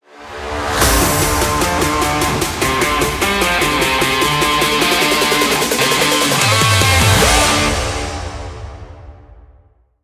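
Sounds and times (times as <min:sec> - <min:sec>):
trap rock music: 0:00.8 - 0:08.5.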